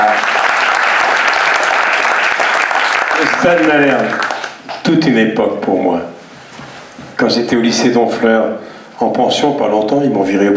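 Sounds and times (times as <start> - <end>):
audience applause: 0.0 - 4.8
speech: 3.4 - 4.3, 4.9 - 6.2, 7.2 - 10.5.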